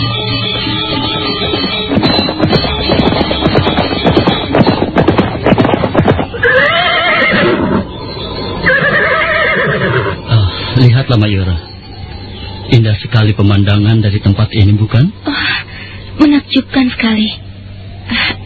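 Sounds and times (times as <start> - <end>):
horse hooves clip-clopping: 0.0 - 7.6
horse neighing: 6.4 - 7.9, 8.6 - 10.2
speech: 11.1 - 11.7, 12.7 - 17.4.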